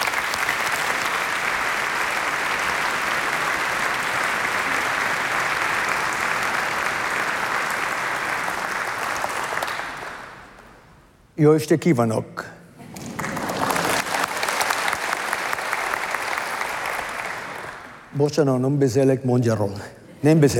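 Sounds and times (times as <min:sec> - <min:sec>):
audience applause welcoming the jury president of a competition: 0:00.0 - 0:10.5, 0:12.9 - 0:18.1
speech: 0:11.4 - 0:12.5, 0:18.2 - 0:20.5.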